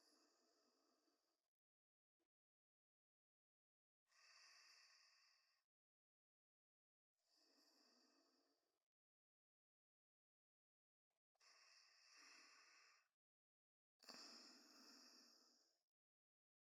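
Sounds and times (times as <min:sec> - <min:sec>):
person breathing in sleep: 0:04.1 - 0:05.6, 0:07.3 - 0:08.6, 0:11.4 - 0:13.1, 0:14.0 - 0:15.8.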